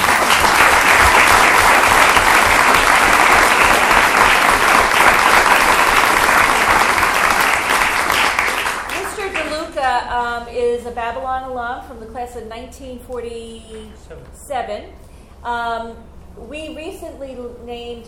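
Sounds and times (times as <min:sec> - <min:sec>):
audience applause: 0:00.0 - 0:09.6
speech: 0:10.9 - 0:18.0.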